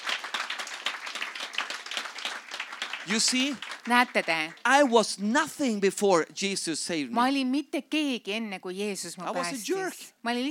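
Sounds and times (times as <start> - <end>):
audience applause: 0.0 - 5.1
speech: 3.1 - 10.4.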